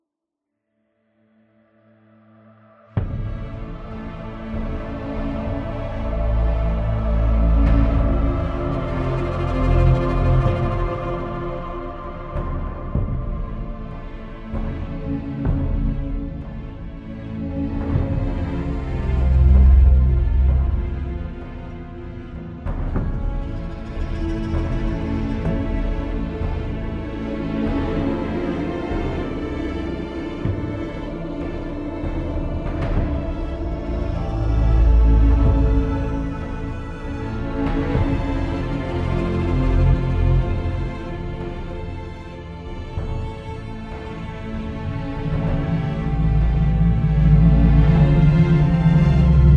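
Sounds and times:
suspense music loop: 3.0s - 49.5s.

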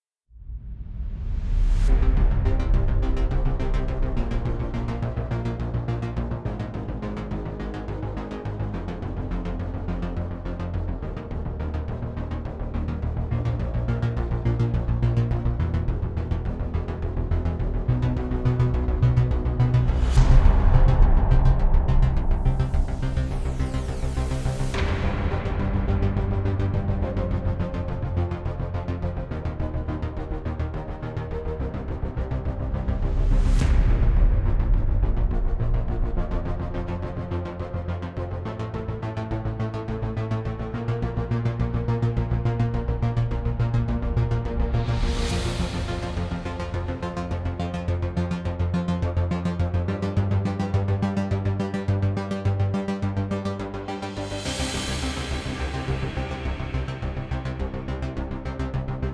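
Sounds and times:
tension music: 0.4s - 59.1s.

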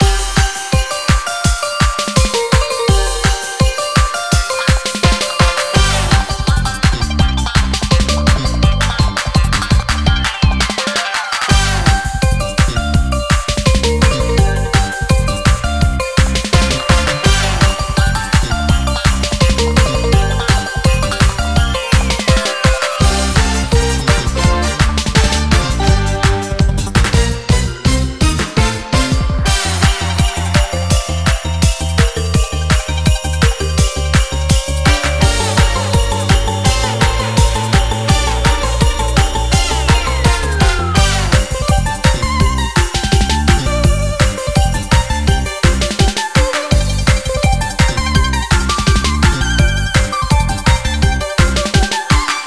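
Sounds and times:
Antarctic main music loop: 0.0s - 52.4s.

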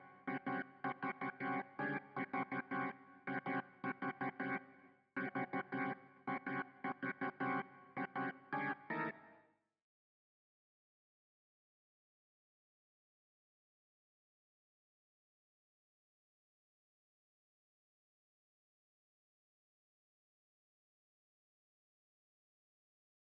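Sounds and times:
synths and keys: 0.0s - 9.4s.

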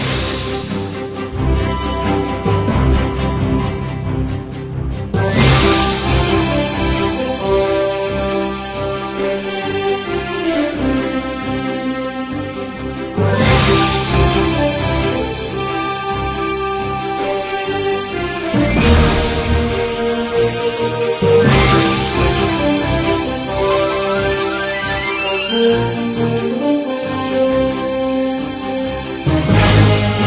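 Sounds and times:
pirate-themed background music: 0.0s - 30.2s.

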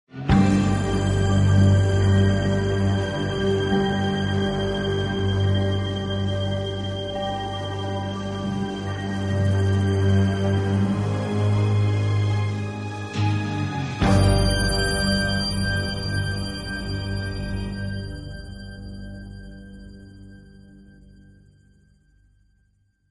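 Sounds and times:
suspense music loop: 0.2s - 21.9s.

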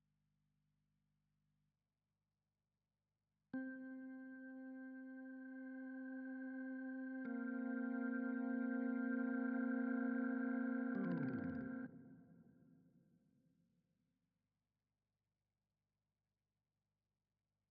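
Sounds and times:
synths and keys: 3.6s - 12.1s.

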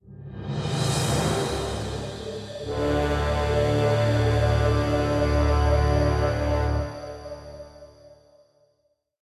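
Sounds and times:
end stinger: 0.8s - 8.2s.

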